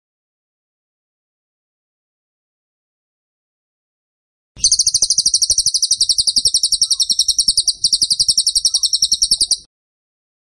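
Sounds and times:
bird high chirps: 4.6s - 9.7s.

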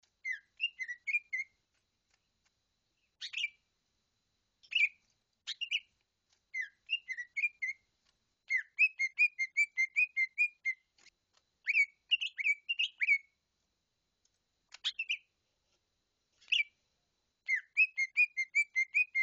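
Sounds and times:
bird singing bright whistled notes in rapid bursts: 0.2s - 1.6s, 3.2s - 3.6s, 4.6s - 7.8s, 8.4s - 10.9s, 11.6s - 13.4s, 14.8s - 15.3s, 16.4s - 16.8s, 17.4s - 19.2s.

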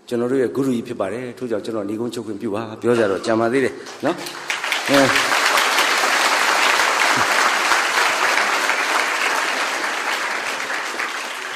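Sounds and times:
speech: 0.1s - 5.2s
audience applause at a speaking event: 3.8s - 11.5s.

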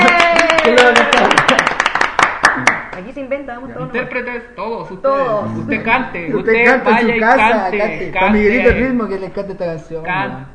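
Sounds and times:
audience applause at a live music broadcast: 0.0s - 3.0s
speech: 3.0s - 10.5s.

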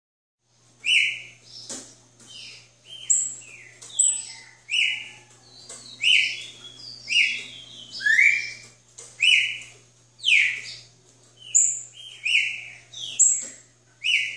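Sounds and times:
red-cowled cardinal whistling: 0.8s - 1.3s, 6.0s - 8.6s, 9.2s - 9.6s, 10.2s - 10.8s, 11.5s - 13.4s, 14.0s - 14.3s.

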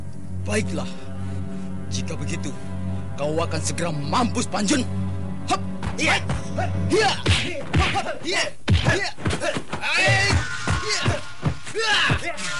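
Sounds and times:
speech: 0.4s - 1.0s, 1.9s - 12.5s
bare-handed punches in a fight: 7.1s - 12.3s.

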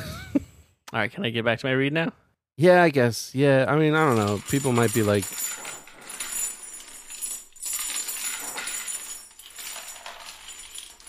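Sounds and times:
speech: 0.9s - 5.5s
spare keys jingling as they are handed over: 4.0s - 11.0s.

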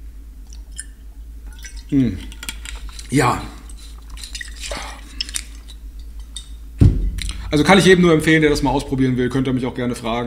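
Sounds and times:
low steady hum: 0.0s - 10.2s
faint liquid clicks: 0.4s - 6.6s
crystal-clear water being sipped and dripping: 0.4s - 7.5s
speech: 1.9s - 2.4s, 3.1s - 3.6s, 7.5s - 10.2s.

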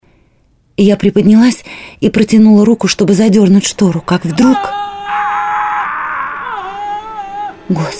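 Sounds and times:
speech: 0.8s - 4.9s, 7.7s - 7.9s
woman screaming in the night in the corridors of Thornfield: 4.1s - 7.6s.

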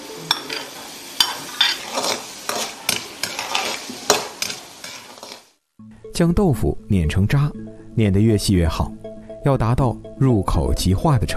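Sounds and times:
blanched diced cucumber peel and mushroom sizzling in hot oil in a wok: 0.0s - 5.6s
utensil scraping against a wok: 0.3s - 5.5s
speech: 6.2s - 11.3s.

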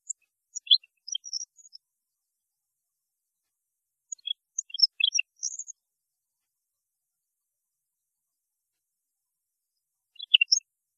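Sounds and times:
European goldfinch singing: 0.0s - 1.8s, 4.1s - 5.7s, 10.2s - 10.6s.

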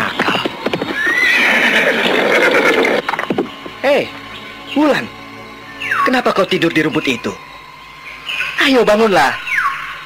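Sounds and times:
horse neighing: 0.8s - 3.2s
speech: 3.9s - 5.2s, 6.0s - 7.5s, 8.6s - 9.5s.

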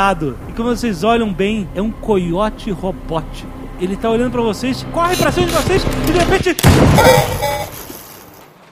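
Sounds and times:
speech: 0.0s - 7.8s
gunshot echoing in the desert: 6.6s - 7.8s.

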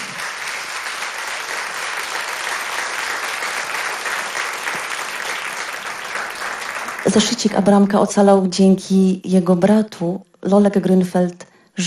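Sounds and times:
crowd applauding: 0.0s - 7.6s
speech: 7.0s - 11.8s.

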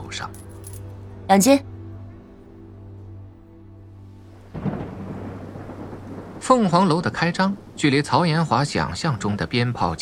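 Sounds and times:
speech: 0.1s - 0.4s, 1.3s - 1.7s, 6.5s - 10.0s
heavy rain: 4.3s - 10.0s.

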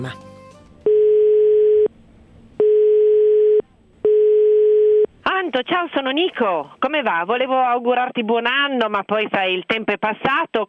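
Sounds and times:
speech: 0.0s - 0.3s, 5.5s - 10.6s
telephone dial tone before a call: 0.9s - 1.9s, 2.6s - 5.1s.

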